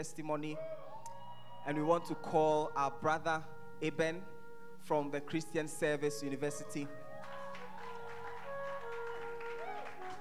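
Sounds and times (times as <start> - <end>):
speech: 0.0 - 0.9, 1.6 - 7.0
weak hand clapping: 7.2 - 10.1.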